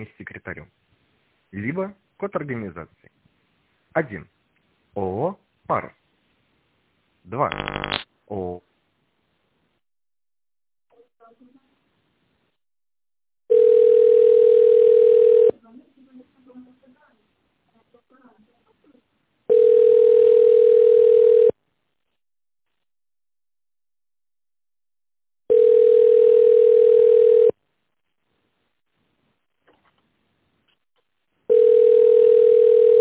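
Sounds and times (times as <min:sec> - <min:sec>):
speech: 0:00.0 - 0:00.8, 0:01.6 - 0:03.1, 0:04.0 - 0:04.4, 0:05.0 - 0:06.0, 0:07.3 - 0:08.6
telephone line tone while waiting in queue: 0:13.5 - 0:15.5, 0:19.5 - 0:21.6, 0:25.5 - 0:27.6, 0:31.5 - 0:32.9.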